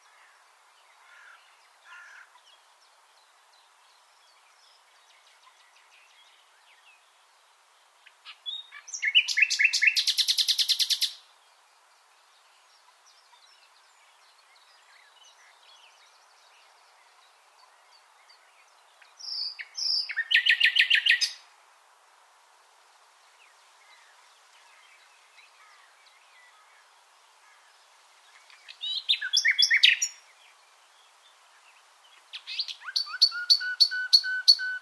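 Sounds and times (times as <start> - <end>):
common nightingale song: 0.0 - 21.5, 23.3 - 34.8.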